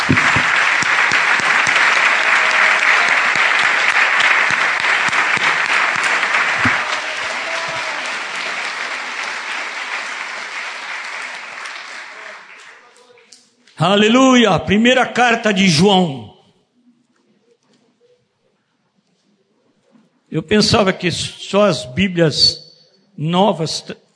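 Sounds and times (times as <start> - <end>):
audience applauding: 0.0 - 13.3
speech: 13.8 - 16.3, 20.3 - 22.6, 23.2 - 24.0.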